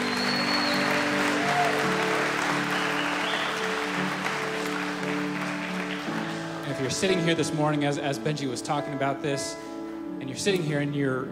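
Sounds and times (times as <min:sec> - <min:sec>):
audience applause: 0:00.0 - 0:07.2
speech: 0:06.8 - 0:11.3.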